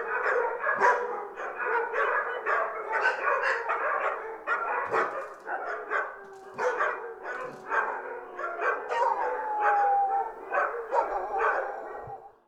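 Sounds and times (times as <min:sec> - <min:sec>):
several dogs barking: 0:00.0 - 0:12.3.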